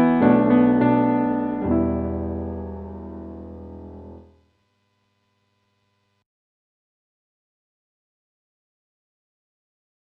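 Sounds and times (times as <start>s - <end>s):
piano: 0.0s - 4.4s.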